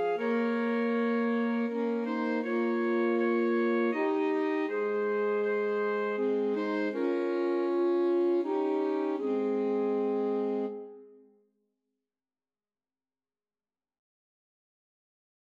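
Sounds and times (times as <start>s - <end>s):
alto sax trio playing a Christmas carol: 0.0s - 11.1s.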